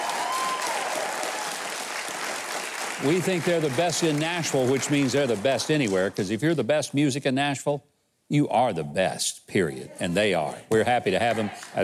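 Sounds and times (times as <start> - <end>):
audience applause: 0.0 - 6.2
speech: 3.0 - 11.8.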